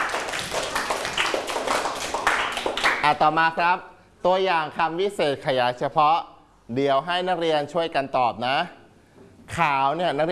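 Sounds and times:
students clapping for themselves: 0.0 - 3.2
speech: 3.0 - 8.8, 9.5 - 10.2.

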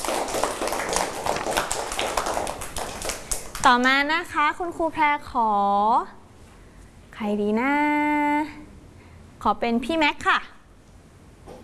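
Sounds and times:
small group clapping hands: 0.0 - 4.0
speech: 3.6 - 6.2, 7.2 - 8.6, 9.4 - 10.5.

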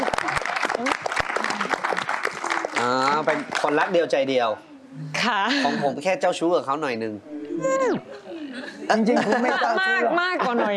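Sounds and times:
audience applause: 0.0 - 3.8
speech: 3.2 - 8.2, 8.9 - 10.7
laughter: 8.6 - 10.7.

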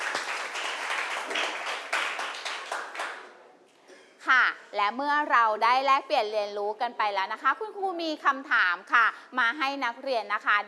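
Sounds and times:
students applauding: 0.0 - 3.3
speech: 4.8 - 10.6.

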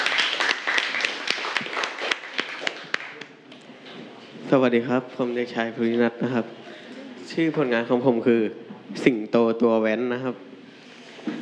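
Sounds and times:
applause for a presented student work: 0.0 - 3.3
speech: 4.5 - 6.7, 7.3 - 10.5.

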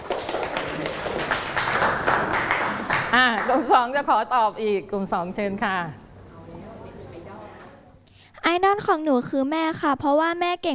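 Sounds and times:
group of children clapping: 0.0 - 3.7
speech: 3.1 - 6.6, 8.5 - 10.7.

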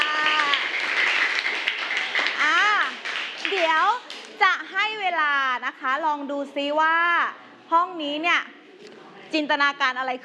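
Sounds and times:
crowd clapping: 0.0 - 4.4
speech: 5.7 - 10.2.

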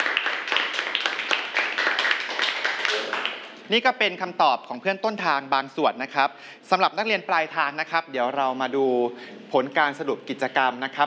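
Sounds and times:
students clapping for a classmate: 0.0 - 3.6
speech: 3.7 - 11.0.

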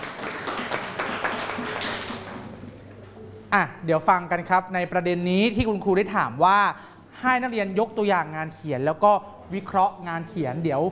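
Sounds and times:
students clapping: 0.0 - 2.7
speech: 3.5 - 10.9.

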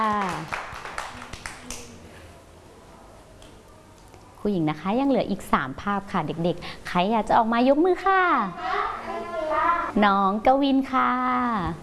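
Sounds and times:
children clapping hands: 0.0 - 2.0
speech: 4.4 - 8.8, 9.9 - 11.8.

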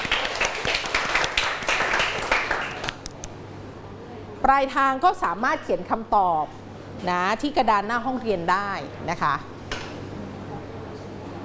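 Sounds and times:
class clapping: 0.0 - 3.1
speech: 4.5 - 9.5.

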